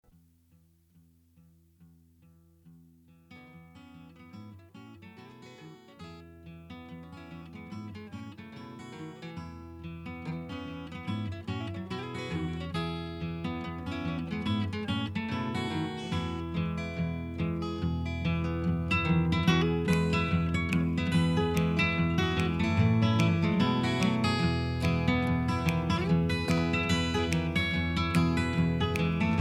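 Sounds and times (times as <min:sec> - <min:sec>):
instrumental music: 0:07.0 - 0:29.3.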